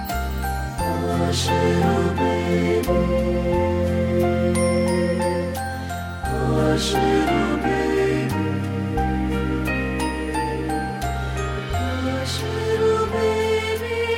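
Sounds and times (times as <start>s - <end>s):
SATB choir singing a Christmas song: 0.1s - 14.1s.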